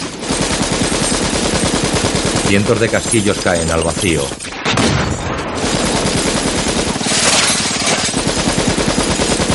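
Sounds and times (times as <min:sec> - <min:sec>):
automatic gunfire from The Matrix: 0:00.2 - 0:09.5
speech: 0:02.5 - 0:04.5.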